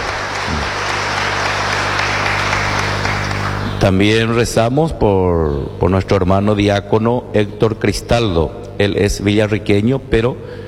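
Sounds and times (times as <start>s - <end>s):
crowd applause: 0.0s - 3.7s
speech: 3.8s - 10.6s.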